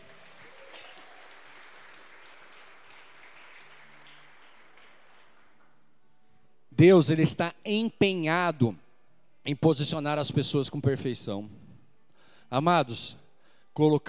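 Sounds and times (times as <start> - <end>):
audience applauding: 0.0 - 5.7
speech: 6.8 - 8.8, 9.4 - 11.6, 12.5 - 13.2, 13.8 - 14.0.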